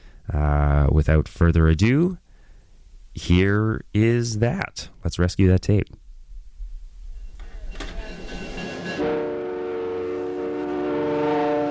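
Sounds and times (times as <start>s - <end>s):
speech: 0.3s - 2.2s, 3.2s - 6.0s
passenger train rumbling on tracks: 7.8s - 11.6s
train horn: 8.6s - 11.6s.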